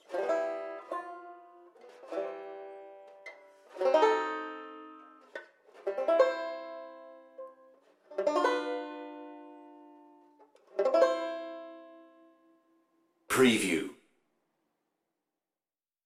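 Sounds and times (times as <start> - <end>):
banjo: 0.0 - 12.7.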